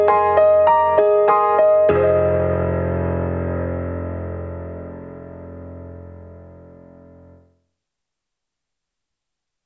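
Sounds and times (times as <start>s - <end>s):
Yamaha Motif-Rack ES 78rpm piano: 0.0s - 7.6s.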